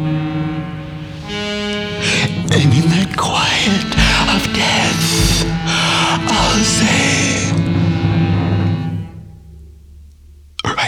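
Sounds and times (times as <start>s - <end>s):
foghorn sounding miles away: 0.0s - 10.4s
speech: 2.5s - 3.8s.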